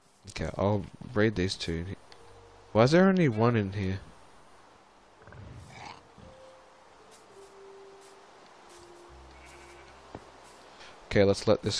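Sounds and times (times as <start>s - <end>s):
constant noise: 0.0s - 11.7s
speech: 0.3s - 2.0s, 2.8s - 4.1s, 11.1s - 11.7s
sheep bleating: 9.2s - 10.0s.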